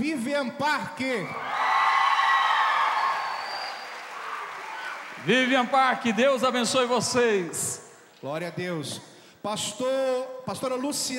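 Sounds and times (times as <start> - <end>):
speech: 0.0 - 1.7, 5.2 - 11.1
church congregation applauding and cheering: 1.2 - 7.8.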